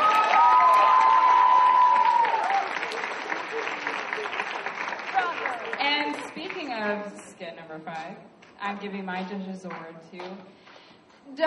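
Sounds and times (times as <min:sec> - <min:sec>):
audience applause: 0:00.0 - 0:06.7
speech: 0:07.8 - 0:10.6, 0:11.3 - 0:11.4.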